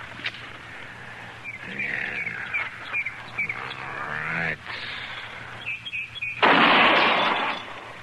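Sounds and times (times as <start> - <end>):
faint voices: 1.1 - 5.6
rifle shot at a target steadied on a fence rail: 6.4 - 7.8.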